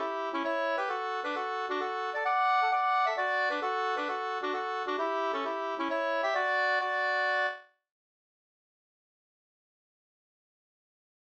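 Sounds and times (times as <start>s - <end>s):
hambo polska dance tune: 0.0s - 7.6s.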